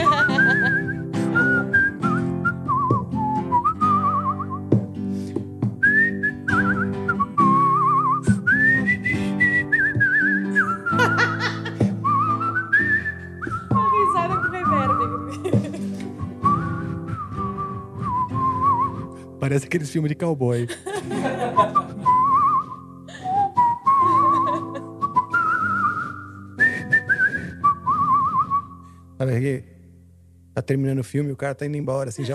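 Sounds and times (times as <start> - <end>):
laughter: 0.0 - 0.9, 10.6 - 12.0, 15.3 - 16.1, 20.7 - 22.3, 24.0 - 25.0, 32.2 - 32.3
person whistling a bird-like melody: 0.0 - 4.9, 5.8 - 15.4, 16.3 - 19.2, 21.6 - 28.9
instrumental music: 0.0 - 20.2, 20.9 - 30.6
speech: 19.6 - 21.8, 30.7 - 32.3.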